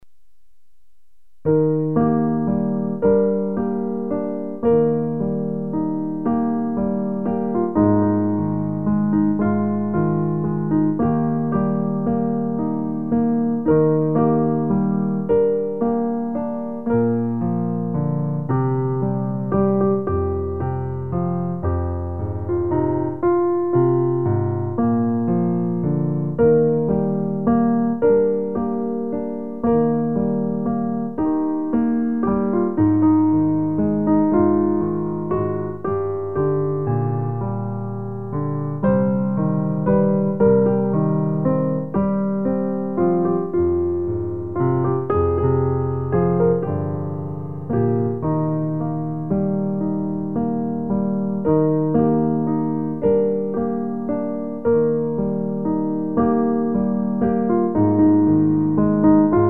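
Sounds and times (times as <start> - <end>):
piano: 0.0 - 59.4.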